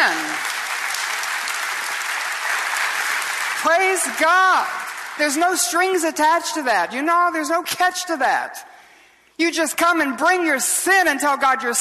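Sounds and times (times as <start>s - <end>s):
audience applause: 0.0s - 5.5s
speech: 3.6s - 8.7s, 9.4s - 11.7s.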